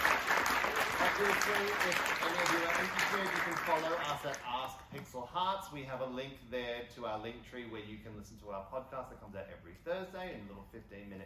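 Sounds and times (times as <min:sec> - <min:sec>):
audience applause: 0:00.0 - 0:04.7
speech: 0:01.2 - 0:11.2.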